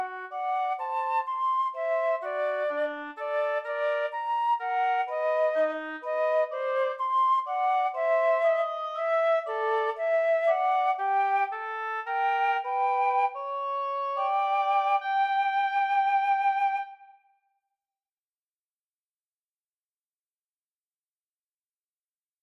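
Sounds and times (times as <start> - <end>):
flute and oboe duet: 0.0 - 17.3.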